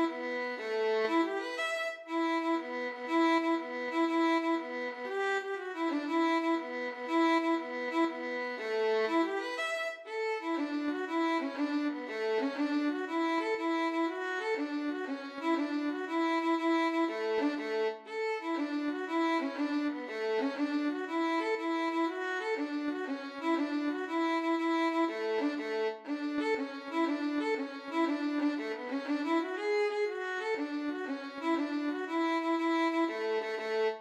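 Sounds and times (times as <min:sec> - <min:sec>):
violin duet playing an Irish jig medley: 0:00.0 - 0:33.9.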